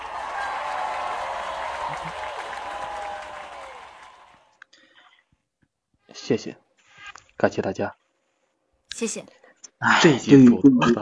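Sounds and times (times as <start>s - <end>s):
crowd voices: 0.0s - 4.5s
audience applause: 0.0s - 4.6s
speech: 6.3s - 6.6s, 7.4s - 8.0s, 9.0s - 11.0s.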